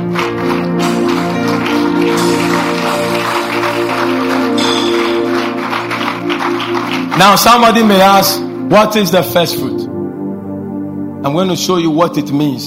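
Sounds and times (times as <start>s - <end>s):
audience clapping: 0.0s - 8.0s
speech: 7.2s - 9.7s, 11.2s - 12.6s.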